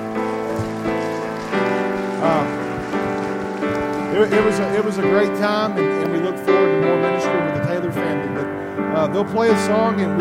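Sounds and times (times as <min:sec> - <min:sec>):
audience applause: 0:00.0 - 0:06.8
sustained musical chords: 0:00.0 - 0:10.2
speech: 0:04.2 - 0:10.2.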